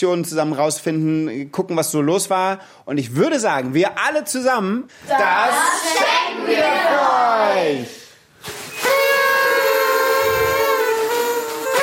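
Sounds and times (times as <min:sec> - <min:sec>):
speech: 0:00.0 - 0:08.6
party horns blowing: 0:08.6 - 0:11.8.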